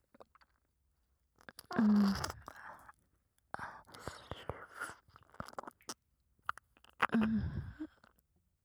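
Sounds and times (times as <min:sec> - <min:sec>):
ear licking on left and right simultaneously: 0:01.4 - 0:02.9, 0:03.6 - 0:08.2.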